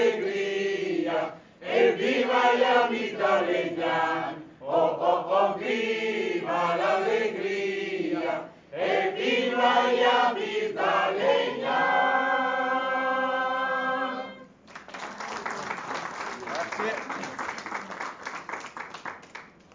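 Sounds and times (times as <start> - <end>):
choir singing: 0.0 - 14.5.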